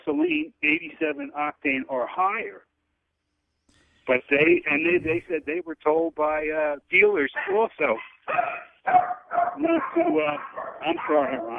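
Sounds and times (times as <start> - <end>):
speech: 0.1 - 2.7, 4.0 - 11.5
dog barking in whiny yelps: 7.3 - 11.5.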